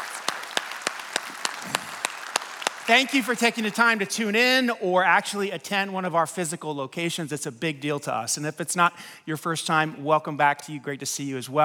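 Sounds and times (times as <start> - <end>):
audience applause for first-time guests: 0.0 - 4.0
sharp accented claps in a regular beat: 0.0 - 4.3
speech: 2.9 - 11.6.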